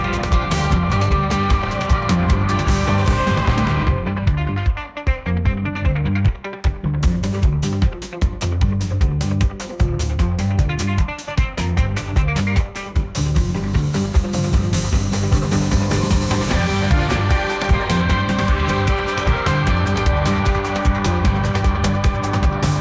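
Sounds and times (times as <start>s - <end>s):
African jungle drum rhythms: 0.0s - 22.8s.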